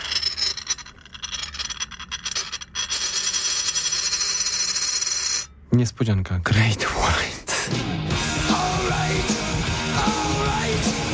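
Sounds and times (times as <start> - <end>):
coin rattling on a small plate: 0.0 - 5.6
speech: 5.8 - 11.0.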